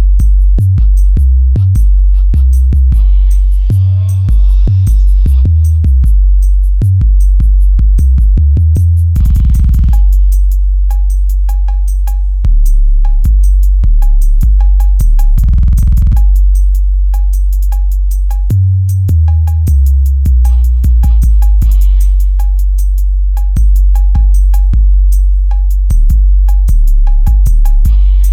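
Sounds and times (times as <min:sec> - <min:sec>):
slow mellow bass: 0:00.0 - 0:28.3.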